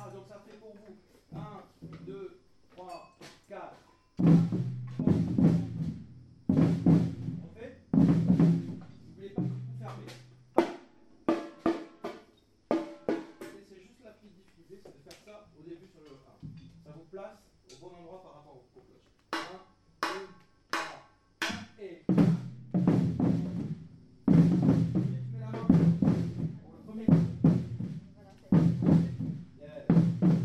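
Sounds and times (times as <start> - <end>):
batucada drumming: 4.2 - 13.6, 19.3 - 30.4.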